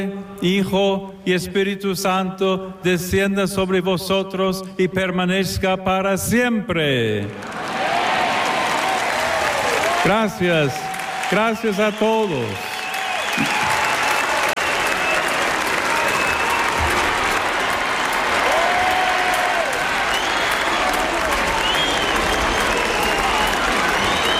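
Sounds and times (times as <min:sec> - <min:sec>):
speech: 0:00.0 - 0:07.7, 0:10.0 - 0:12.7
large crowd cheering and applauding: 0:07.3 - 0:24.3
faint whistles: 0:12.7 - 0:15.3, 0:20.1 - 0:24.3.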